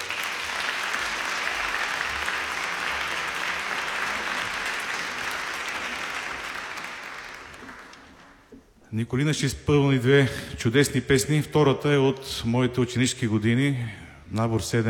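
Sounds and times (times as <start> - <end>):
audience applause: 0.0 - 8.5
speech: 8.9 - 14.8.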